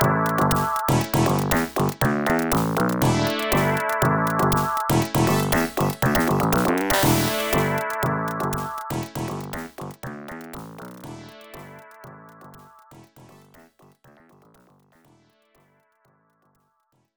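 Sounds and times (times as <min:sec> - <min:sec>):
drum loop: 0:00.0 - 0:13.7.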